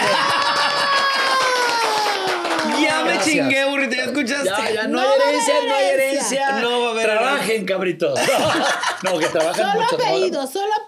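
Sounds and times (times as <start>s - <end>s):
audience applause: 0.0s - 3.4s
laughter: 0.0s - 3.5s, 8.2s - 10.4s
speech: 4.2s - 10.8s.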